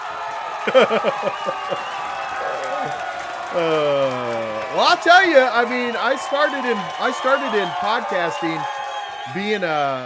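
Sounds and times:
audience applause: 0:00.0 - 0:10.0
excited shouts and whoops: 0:00.0 - 0:10.0
laughter: 0:00.5 - 0:03.0, 0:03.6 - 0:08.6
speech: 0:00.7 - 0:02.0, 0:02.8 - 0:10.0.

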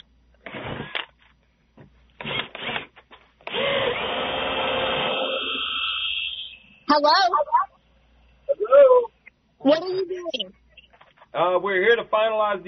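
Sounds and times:
power drill boring through a door lock: 0:00.4 - 0:01.1, 0:02.2 - 0:06.6
speech: 0:07.0 - 0:07.5, 0:09.6 - 0:10.6, 0:11.3 - 0:12.6.

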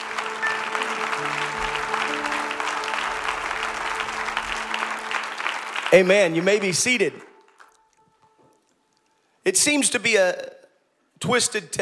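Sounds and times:
audience clapping hands in praise: 0:00.0 - 0:08.7
speech: 0:05.9 - 0:07.3, 0:09.5 - 0:10.6, 0:11.2 - 0:11.8.

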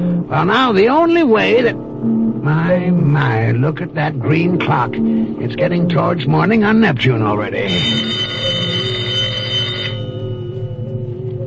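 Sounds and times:
speech: 0:00.3 - 0:08.6
telephone ringing with bright bell: 0:07.6 - 0:10.9.

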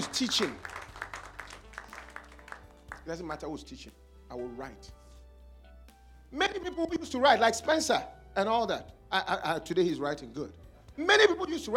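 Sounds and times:
speech: 0:00.0 - 0:00.7, 0:03.1 - 0:05.0, 0:06.3 - 0:11.7
audience clapping: 0:00.0 - 0:03.2.

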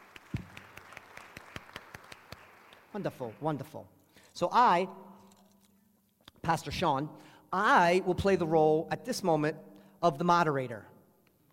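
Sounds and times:
faint scattered clapping from a small church gathering: 0:00.0 - 0:03.5
speech: 0:02.9 - 0:05.1, 0:06.4 - 0:10.9.

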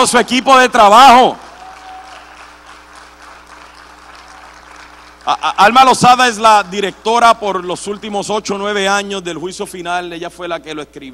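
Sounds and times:
speech: 0:00.0 - 0:01.5, 0:05.3 - 0:11.1
audience applause: 0:01.0 - 0:08.0.

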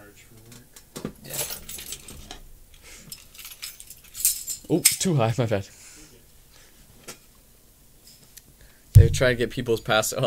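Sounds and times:
set of keys jangling as it is grabbed: 0:01.3 - 0:04.7
speech: 0:04.7 - 0:05.8, 0:09.1 - 0:10.2.

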